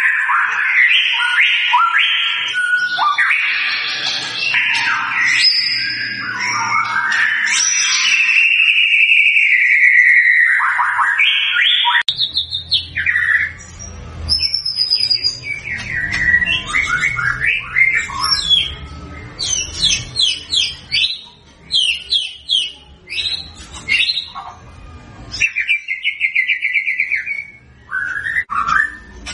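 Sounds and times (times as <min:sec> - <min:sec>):
White-rumped shama whistled song: 0:00.0 - 0:24.4, 0:25.3 - 0:29.2.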